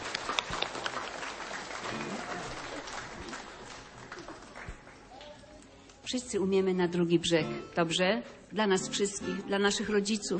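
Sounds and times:
audience applause: 0.0 - 5.4
speech: 6.1 - 10.3.

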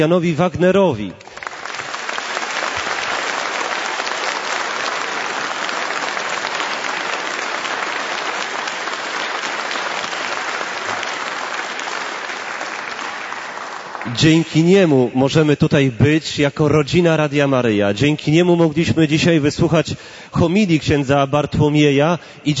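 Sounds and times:
speech: 0.0 - 1.2, 14.2 - 22.5
audience applause: 1.2 - 14.5.

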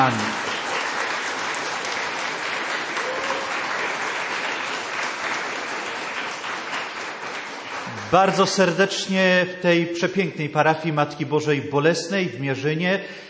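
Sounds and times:
speech: 0.0 - 0.4, 8.1 - 13.2
warm applause: 0.0 - 8.8.

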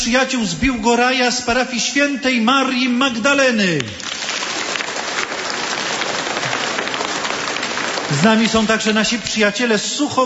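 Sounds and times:
speech: 0.0 - 4.2, 8.2 - 10.2
audience applause at a church gathering: 4.0 - 9.3.

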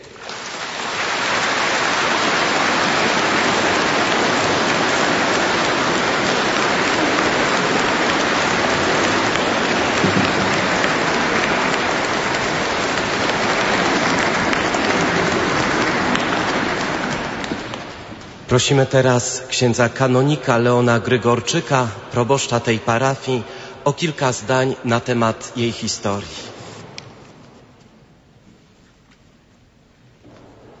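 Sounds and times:
audience applause: 0.0 - 18.6
speech: 18.5 - 26.5.

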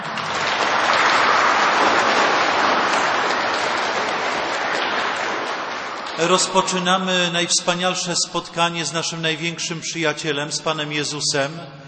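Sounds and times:
warm audience applause: 0.0 - 6.7
speech: 6.2 - 11.8.

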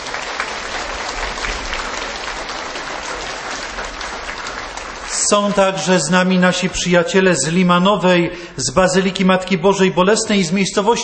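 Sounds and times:
audience applause from a large crowd: 0.0 - 7.0
speech: 5.3 - 11.0.

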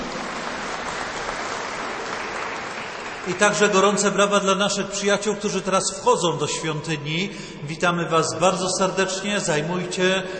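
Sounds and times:
audience applause: 0.0 - 4.1
speech: 3.2 - 10.3.

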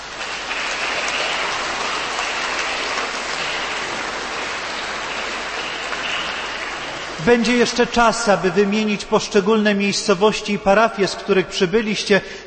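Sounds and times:
audience applause: 0.0 - 7.8
speech: 7.2 - 12.4.

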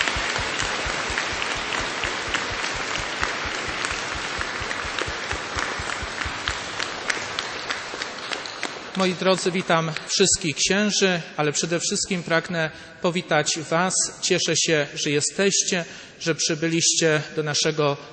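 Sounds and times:
applause welcoming a guest in a church: 0.0 - 10.1
speech: 9.0 - 18.1.

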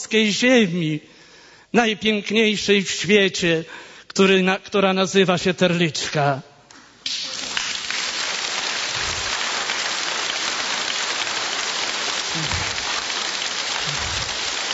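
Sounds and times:
speech: 0.0 - 1.1, 1.7 - 6.5
crowd applauding: 7.1 - 14.7.

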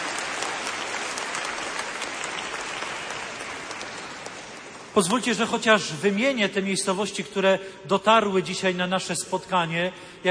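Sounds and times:
audience applause in a church: 0.0 - 5.1
speech: 5.0 - 10.2.

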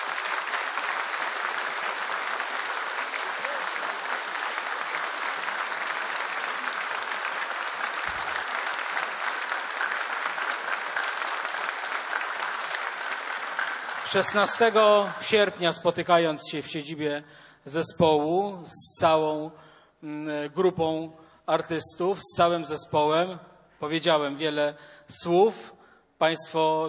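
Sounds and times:
audience applause: 0.0 - 15.6
speech: 14.1 - 26.8.

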